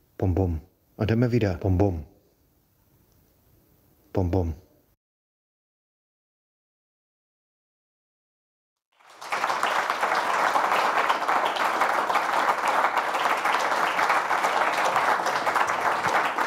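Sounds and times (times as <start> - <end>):
speech: 0.2 - 2.1, 4.2 - 4.6
audience applause: 9.0 - 16.4.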